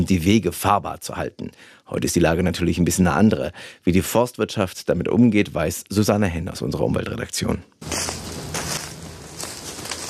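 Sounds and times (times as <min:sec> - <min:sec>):
speech: 0:00.0 - 0:08.2
noise: 0:00.0 - 0:10.0
footsteps on a forest walk in the Grötzinger Bergwald near Karlsruhe: 0:07.8 - 0:10.0.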